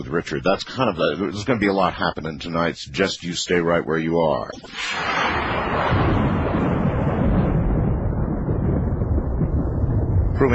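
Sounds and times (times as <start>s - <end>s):
speech: 0.0s - 6.4s
half a thunderclap: 4.6s - 10.5s.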